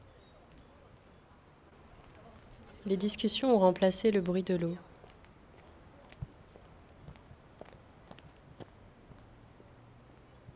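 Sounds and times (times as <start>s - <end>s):
high heels walking on asphalt: 2.0s - 9.8s
speech: 2.8s - 4.9s.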